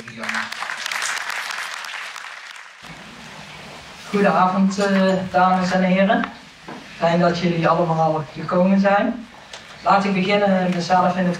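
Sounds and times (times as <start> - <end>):
crowd applauding: 0.0 - 2.9
speech: 4.1 - 6.4, 7.0 - 11.3.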